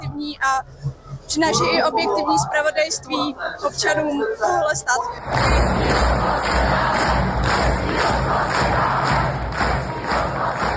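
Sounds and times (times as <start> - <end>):
speech: 0.1 - 8.8
protest crowd chanting and cheering: 5.0 - 10.7.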